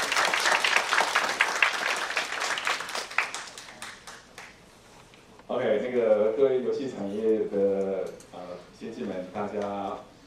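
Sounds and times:
audience applause: 0.0s - 4.6s
speech: 5.9s - 8.2s, 8.8s - 10.1s.

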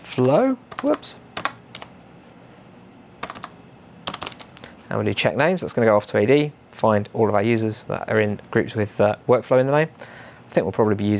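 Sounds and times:
speech: 0.2s - 1.2s, 4.9s - 11.1s
computer keyboard typing: 0.2s - 1.9s, 3.2s - 4.7s.

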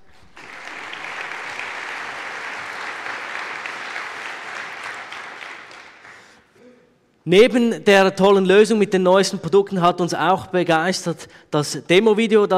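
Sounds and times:
audience applause: 0.0s - 6.5s
speech: 7.3s - 12.5s.

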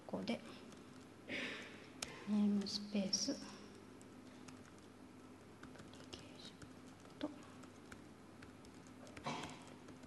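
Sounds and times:
low steady hum: 0.0s - 10.0s
speech: 0.1s - 0.7s, 1.3s - 1.6s, 2.3s - 3.6s
keystrokes on a computer keyboard entering a C# file name in a code editor: 5.6s - 10.0s.

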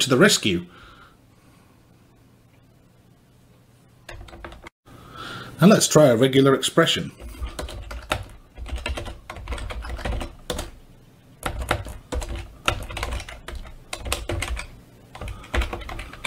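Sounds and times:
speech: 0.0s - 0.9s, 5.6s - 7.3s
rapid typing on a computer keyboard: 4.1s - 4.7s, 7.2s - 10.8s, 11.4s - 16.2s.

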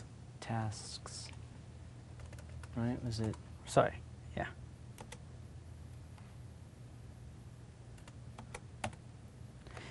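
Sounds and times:
low steady hum: 0.0s - 9.9s
speech: 0.4s - 1.3s, 2.8s - 4.6s
keystrokes on a computer keyboard: 2.2s - 3.4s, 5.0s - 5.2s, 8.0s - 9.0s.

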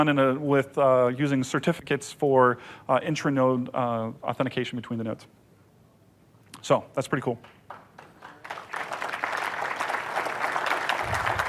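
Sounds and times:
speech: 0.0s - 5.4s, 6.6s - 7.6s
audience applause: 7.7s - 11.4s.

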